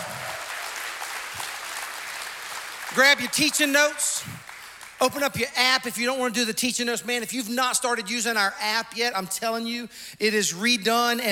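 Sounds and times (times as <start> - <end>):
church audience applauding to welcome all of its campuses: 0.0 - 5.9
speech: 2.9 - 4.4, 5.0 - 11.2.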